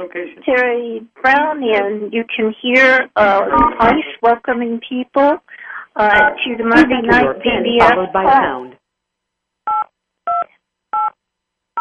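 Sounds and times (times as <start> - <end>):
speech: 0.0 - 8.8
beeps when muting the conference line: 3.3 - 4.1, 6.0 - 8.3, 9.7 - 11.2.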